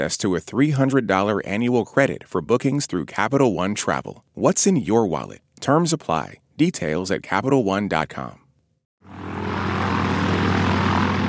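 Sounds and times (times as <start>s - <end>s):
speech: 0.0s - 8.4s
airplane engine droning in flight: 9.0s - 11.2s.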